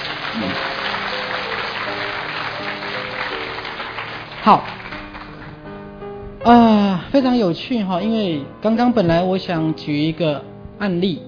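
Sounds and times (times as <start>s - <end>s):
audience applause: 0.0s - 5.6s
speech: 0.4s - 0.7s, 4.5s - 4.7s, 7.1s - 11.2s.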